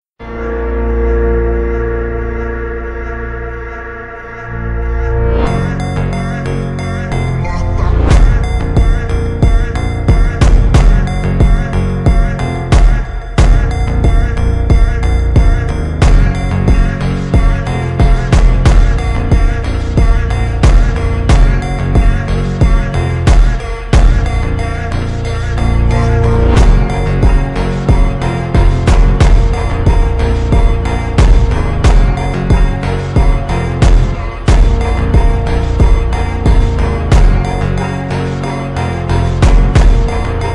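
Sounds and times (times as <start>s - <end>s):
super slowed reverb Brazilian phonk music: 0.2s - 40.5s.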